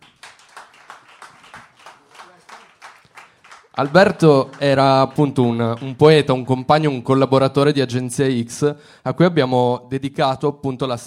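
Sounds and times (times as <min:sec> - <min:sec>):
audience applause: 0:00.0 - 0:06.4
speech: 0:03.8 - 0:11.0.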